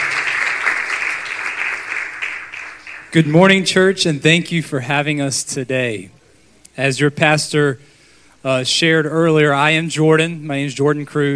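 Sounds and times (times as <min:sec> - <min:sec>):
church congregation applauding: 0:00.0 - 0:03.7
speech: 0:03.1 - 0:06.2, 0:06.8 - 0:11.3.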